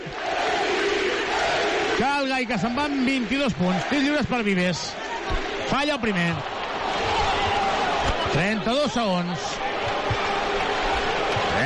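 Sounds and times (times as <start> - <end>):
crowd chanting MVP: 0.0 - 11.6
speech: 2.0 - 6.6, 8.3 - 9.7.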